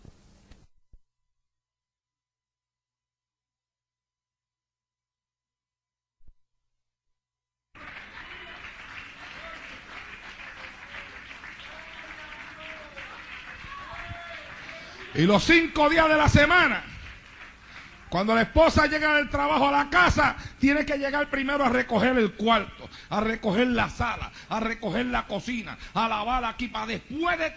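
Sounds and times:
audience applause: 7.8 - 19.0
speech: 15.2 - 16.9, 18.1 - 27.5.

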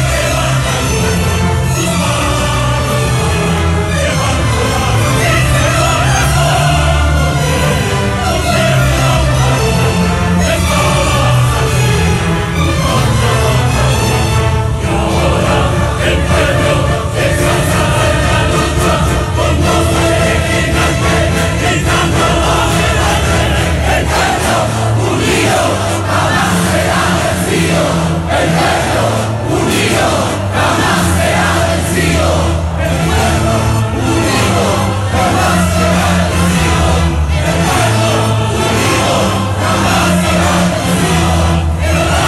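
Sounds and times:
crowd singing along to a song: 0.0 - 42.2.

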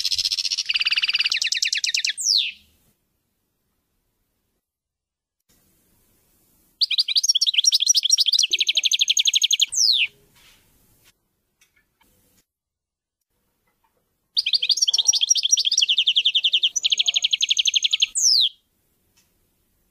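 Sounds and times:
European goldfinch singing: 0.0 - 2.7, 6.8 - 10.2, 14.4 - 18.6.

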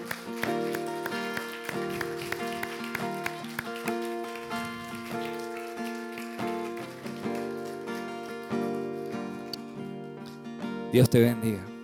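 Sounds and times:
audience applauding: 0.0 - 10.5
speech: 10.9 - 11.7.

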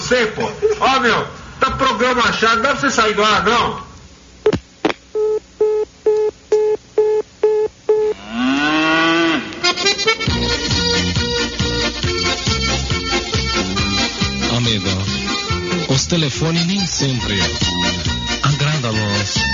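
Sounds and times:
speech: 0.1 - 3.8, 16.1 - 19.5
evenly spaced electronic beeps: 5.2 - 8.2
black cow mooing in a long low call: 8.1 - 9.8
busy rhythmic music: 9.7 - 19.5.

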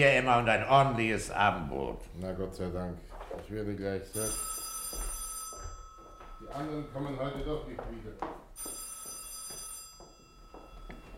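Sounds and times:
speech: 0.0 - 5.1, 6.4 - 8.8
telephone ringing in a radio play set at a hotel: 4.2 - 7.8, 8.6 - 11.1.

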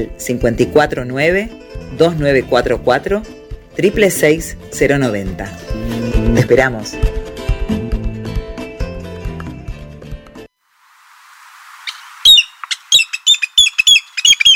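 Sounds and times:
speech: 0.0 - 7.2
music: 0.0 - 10.6
pitillo bird calling in sharp high squawking chirps: 11.8 - 14.5.

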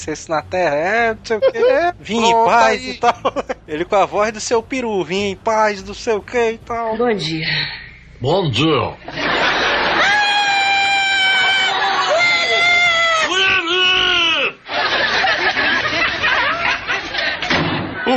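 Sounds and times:
speech: 0.0 - 9.3
laughter: 1.3 - 3.7, 9.0 - 12.6, 14.1 - 18.1
people screaming: 9.8 - 14.6.

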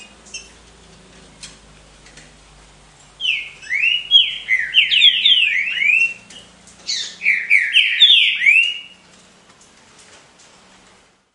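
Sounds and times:
Green-winged saltator song of bright whistled slurs: 3.2 - 9.0.

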